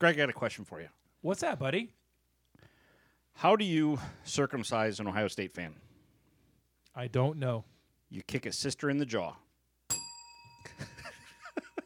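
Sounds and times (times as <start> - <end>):
speech: 0.0 - 2.0, 3.4 - 5.9, 7.0 - 9.4
bell ding: 9.9 - 11.8.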